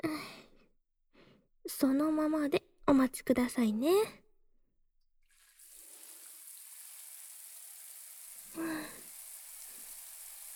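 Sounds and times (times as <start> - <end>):
speech: 0.0 - 0.4, 1.7 - 4.2
shower water rinsing shampoo from hair: 5.3 - 10.5.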